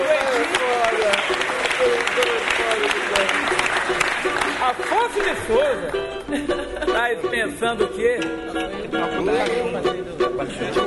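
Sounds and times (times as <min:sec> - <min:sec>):
crowd clapping: 0:00.0 - 0:06.6
speech: 0:05.2 - 0:10.8
laughter: 0:06.2 - 0:07.5.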